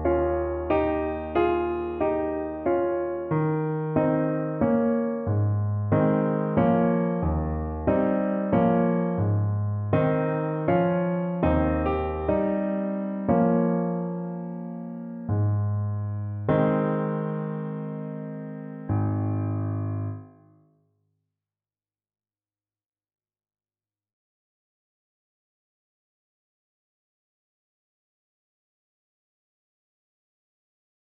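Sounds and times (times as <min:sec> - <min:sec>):
piano: 0:00.0 - 0:20.8.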